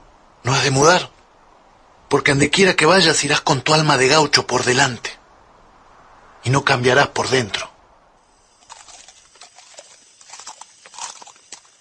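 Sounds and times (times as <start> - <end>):
speech: 0.4 - 1.1, 2.1 - 5.2, 6.4 - 7.7
horse hooves clip-clopping: 8.6 - 11.8.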